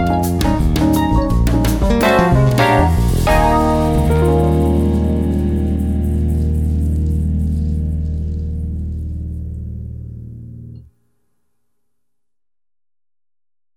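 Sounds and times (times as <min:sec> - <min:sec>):
electric piano: 0:00.0 - 0:10.8.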